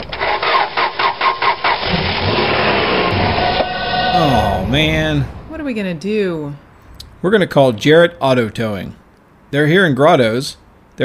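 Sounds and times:
car engine cranking, failing to start: 0.0s - 5.7s
speech: 4.2s - 6.6s, 7.2s - 11.0s.

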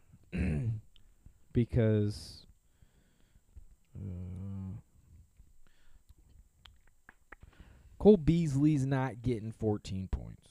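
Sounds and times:
faint noise: 0.0s - 10.4s
loud burp: 0.3s - 0.8s
speech: 1.6s - 2.4s, 4.0s - 4.4s, 8.0s - 10.4s.

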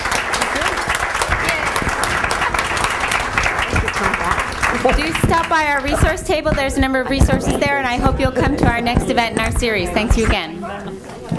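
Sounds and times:
crowd applauding: 0.0s - 6.7s
speech: 4.8s - 11.1s.

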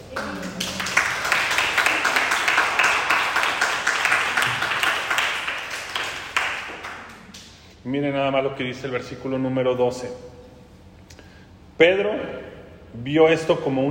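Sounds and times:
applause: 0.0s - 7.4s
speech: 7.9s - 10.3s, 11.8s - 13.9s.

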